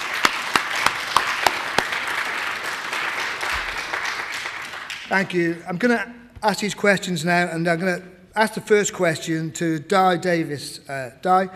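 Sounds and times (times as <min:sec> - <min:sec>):
audience applauding a panel at an art and design event: 0:00.0 - 0:05.5
speech: 0:05.1 - 0:11.5.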